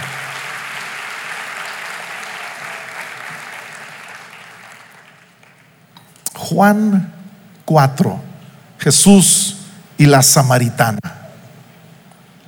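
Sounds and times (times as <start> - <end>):
audience applause: 0.0 - 5.8
speech: 6.5 - 11.1.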